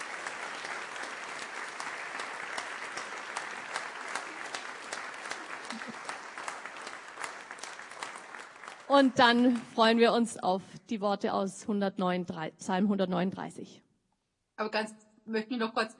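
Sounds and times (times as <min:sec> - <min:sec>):
audience applause in a hall: 0:00.0 - 0:10.0
speech: 0:08.9 - 0:13.8, 0:14.6 - 0:15.9.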